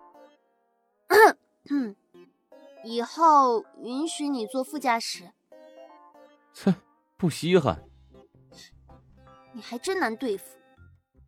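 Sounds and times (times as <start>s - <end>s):
cough: 1.1s - 1.8s
speech: 1.7s - 2.0s, 2.8s - 5.4s, 6.6s - 7.9s, 9.6s - 10.6s.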